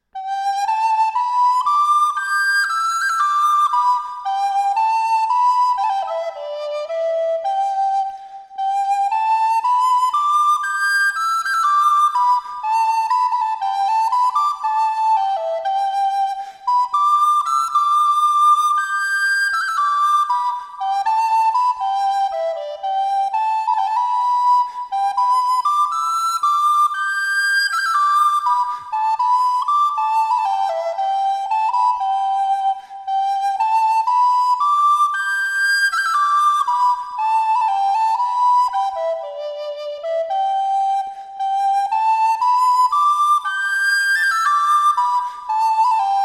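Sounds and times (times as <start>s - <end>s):
flute in C: 0.0s - 46.2s.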